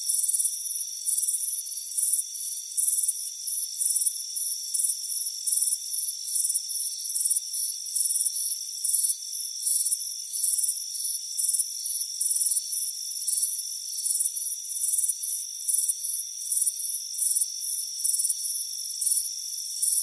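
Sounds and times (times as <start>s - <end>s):
crickets chirping: 0.1s - 20.0s.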